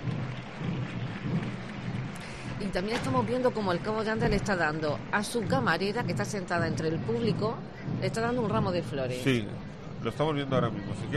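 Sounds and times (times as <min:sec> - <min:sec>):
crowd applause: 0:00.0 - 0:05.2
speech: 0:02.6 - 0:11.1.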